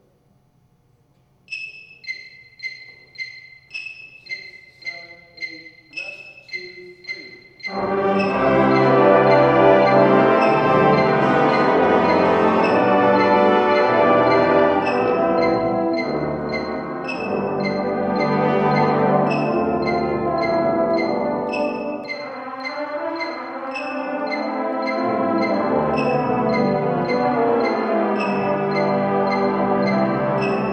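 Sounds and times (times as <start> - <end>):
brass instruments: 7.5 - 30.7.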